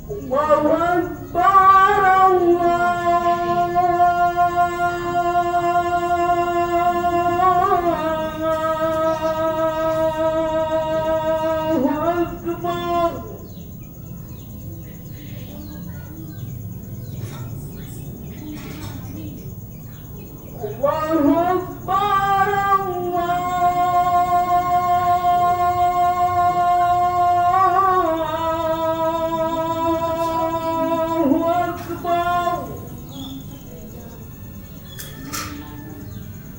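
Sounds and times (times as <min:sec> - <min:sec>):
man singing at a mosque in Indonesia: 0:00.2 - 0:13.4, 0:20.8 - 0:33.2.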